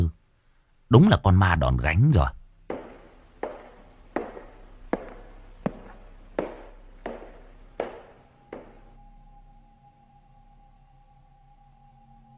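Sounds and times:
speech: 0:00.9 - 0:02.4
wooden clogs clomping on a floor: 0:02.7 - 0:08.9.

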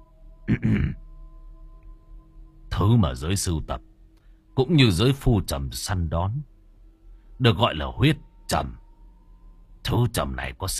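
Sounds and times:
speech: 0:00.5 - 0:01.0, 0:02.8 - 0:03.9, 0:04.6 - 0:06.5, 0:07.4 - 0:08.8, 0:09.8 - 0:10.7
throat clearing: 0:00.5 - 0:01.0.

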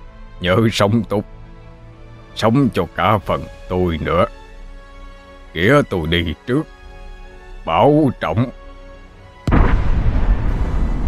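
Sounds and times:
speech: 0:00.4 - 0:01.4, 0:02.4 - 0:04.4, 0:05.5 - 0:06.8, 0:07.6 - 0:08.6
fiery explosion with flames bursting up: 0:09.4 - 0:11.0.

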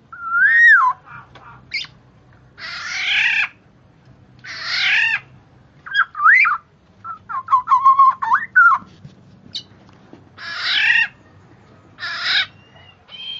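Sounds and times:
bird chirping calls: 0:00.2 - 0:02.0, 0:04.4 - 0:08.9, 0:09.5 - 0:09.8, 0:10.4 - 0:13.3.

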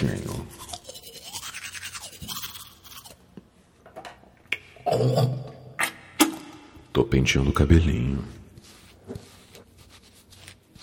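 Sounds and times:
toothbrush scrubbing teeth: 0:00.0 - 0:03.2
speech: 0:04.9 - 0:05.4, 0:07.1 - 0:08.4.

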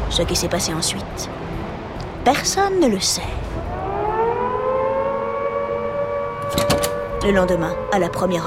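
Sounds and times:
speech: 0:00.1 - 0:01.5, 0:02.3 - 0:03.6, 0:07.3 - 0:08.4
prison alarm siren: 0:03.5 - 0:08.4.

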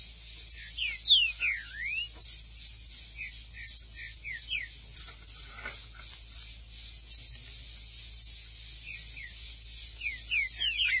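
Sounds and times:
low steady hum: 0:00.0 - 0:10.9
green-winged saltator whistling: 0:00.5 - 0:02.2, 0:03.1 - 0:04.8, 0:08.1 - 0:10.9.

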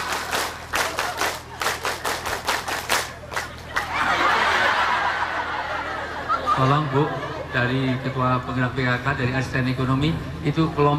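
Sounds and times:
group doing the Indonesian scout clap tepuk pramuka: 0:00.0 - 0:04.0
continuous applause: 0:00.0 - 0:05.1
laughter: 0:03.4 - 0:08.6
speech: 0:06.6 - 0:10.9.

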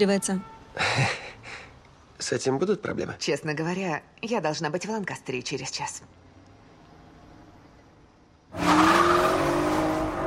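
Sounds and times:
speech: 0:00.0 - 0:01.6, 0:02.2 - 0:06.2
Porsche sports car speeding along a road: 0:08.5 - 0:10.2.

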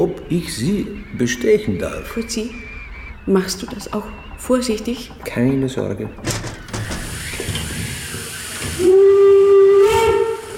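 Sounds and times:
speech: 0:00.0 - 0:06.5
hissing and rumbling of a steam train: 0:00.0 - 0:10.5
steam train whistle: 0:07.0 - 0:10.5.

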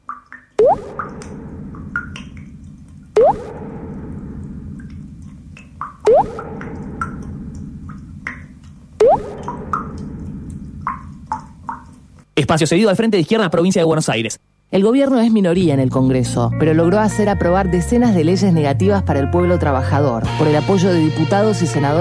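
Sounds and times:
dripping faucet: 0:00.0 - 0:12.3
low hum: 0:00.6 - 0:12.3
speech: 0:12.5 - 0:21.9.

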